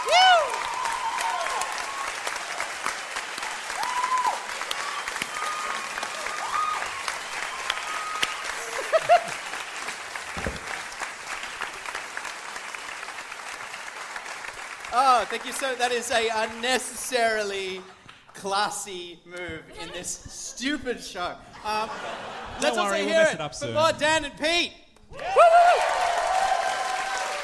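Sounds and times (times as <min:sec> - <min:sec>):
whoops and cheers: 0:00.0 - 0:02.6, 0:03.4 - 0:09.3, 0:25.1 - 0:27.4
sizeable crowd applauding: 0:00.0 - 0:18.4, 0:25.2 - 0:27.4
laughter: 0:08.6 - 0:09.5, 0:21.4 - 0:23.4
speech: 0:15.3 - 0:24.8.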